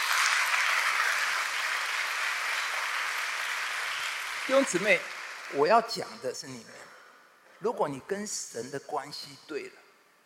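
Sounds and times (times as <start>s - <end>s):
audience applause: 0.0s - 6.1s
speech: 4.5s - 6.9s, 7.6s - 9.8s.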